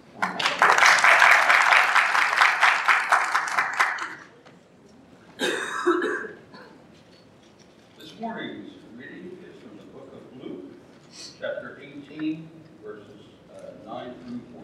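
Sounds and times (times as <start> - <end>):
crowd applause: 0.0 - 4.3.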